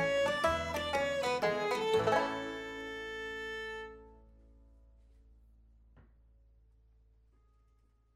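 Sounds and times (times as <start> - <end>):
waltz music: 0.0 - 4.3.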